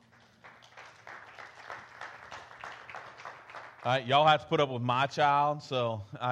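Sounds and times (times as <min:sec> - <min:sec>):
audience applause: 0:00.0 - 0:04.4
speech: 0:03.8 - 0:06.2.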